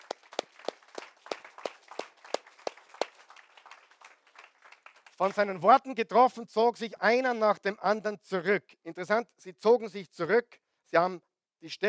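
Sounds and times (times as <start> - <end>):
audience applause: 0.0 - 5.4
speech: 5.2 - 11.8.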